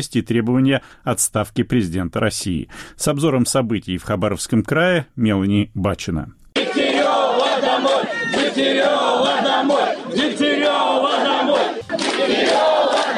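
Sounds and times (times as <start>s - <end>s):
speech: 0.0s - 6.4s, 8.0s - 12.7s
protest crowd chanting: 6.6s - 13.1s.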